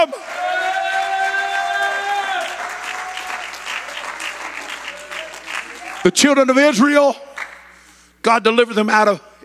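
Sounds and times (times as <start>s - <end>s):
audience clapping hands: 0.1s - 6.4s, 7.3s - 7.8s
speech: 6.0s - 7.2s, 8.2s - 9.3s.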